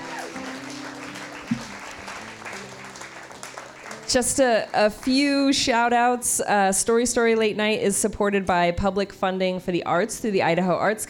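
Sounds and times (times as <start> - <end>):
audience clapping: 0.0 - 5.6
speech: 4.1 - 11.0.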